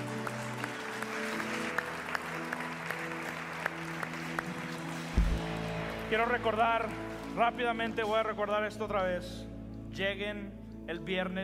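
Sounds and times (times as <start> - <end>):
audience applause: 0.0 - 7.4
speech: 6.1 - 11.4.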